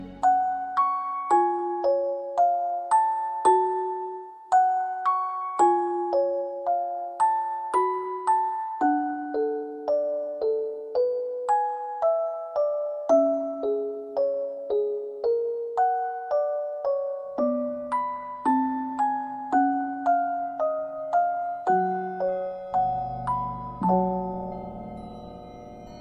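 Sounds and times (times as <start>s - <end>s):
music box: 0.0s - 25.9s.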